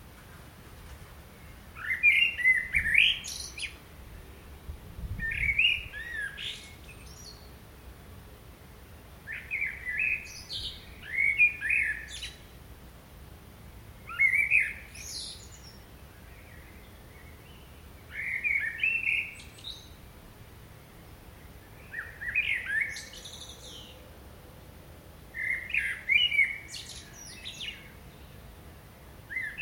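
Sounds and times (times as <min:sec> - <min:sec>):
Common blackbird singing: 0:01.8 - 0:03.8, 0:05.2 - 0:07.5, 0:09.3 - 0:12.5, 0:14.0 - 0:20.0, 0:21.6 - 0:24.0, 0:25.4 - 0:28.4, 0:29.3 - 0:29.6.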